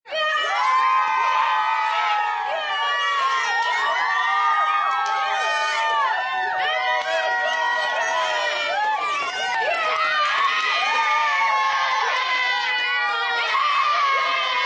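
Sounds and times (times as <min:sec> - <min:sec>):
rowdy group of 10-12 children cheering: 0:00.1 - 0:14.6.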